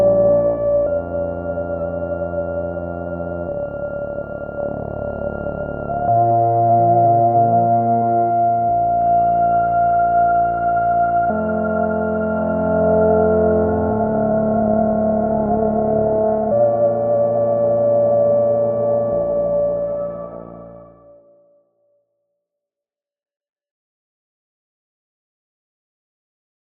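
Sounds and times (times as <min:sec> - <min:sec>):
droning Moog Subharmonicon synthesizer on tape: 0:00.0 - 0:21.3.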